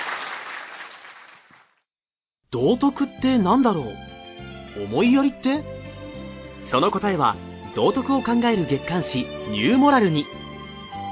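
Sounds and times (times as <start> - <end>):
studio audience applause sending off a guest speaker: 0.0 - 1.7
speech: 2.5 - 4.1, 4.8 - 5.7, 6.7 - 10.4.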